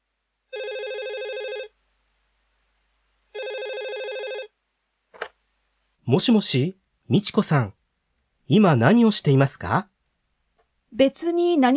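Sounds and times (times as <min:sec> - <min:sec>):
telephone ringing in Sue and Michiko's room: 0:00.5 - 0:01.8, 0:03.4 - 0:04.6
speech: 0:06.1 - 0:07.8, 0:08.5 - 0:09.9, 0:10.9 - 0:11.7.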